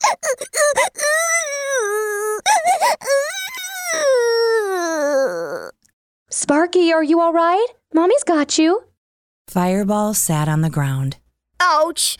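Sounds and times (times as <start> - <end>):
child wailing in terror: 0.0 - 5.8
speech: 0.1 - 1.0, 6.5 - 8.9, 9.5 - 12.1.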